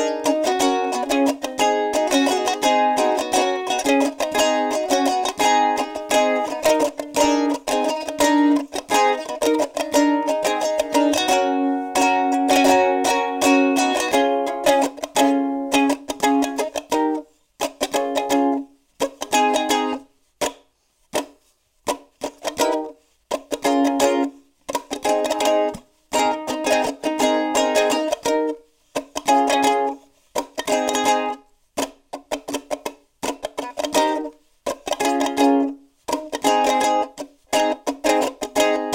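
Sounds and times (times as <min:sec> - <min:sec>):
ukulele playing: 0:00.0 - 0:38.9.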